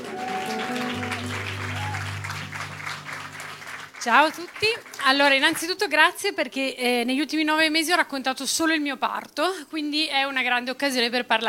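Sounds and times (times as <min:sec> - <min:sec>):
audience applause welcoming a speaker: 0:00.0 - 0:05.7
speech: 0:04.0 - 0:11.4.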